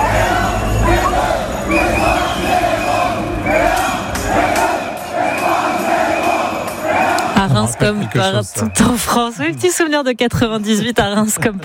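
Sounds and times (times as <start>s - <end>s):
car horns: 0.0s - 7.4s
football fans celebrating in a square: 0.0s - 9.8s
speech: 7.7s - 11.6s.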